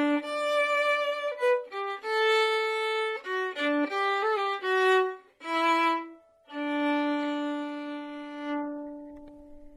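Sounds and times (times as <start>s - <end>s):
violin lullaby melody: 0.0s - 9.7s.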